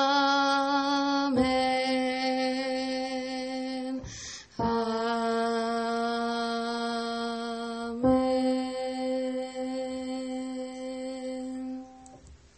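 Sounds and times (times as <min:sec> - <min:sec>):
sopranos singing a sacred song: 0:00.0 - 0:12.1.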